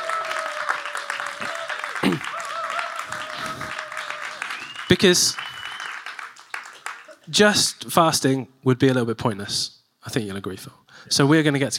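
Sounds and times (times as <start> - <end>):
audience applause: 0.0 - 7.3
speech: 4.9 - 5.5, 7.3 - 11.7.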